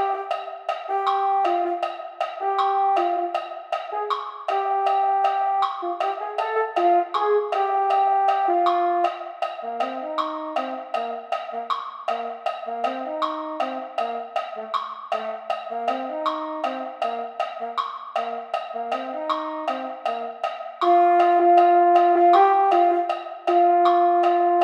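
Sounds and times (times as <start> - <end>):
mellophone: 0.0 - 24.6.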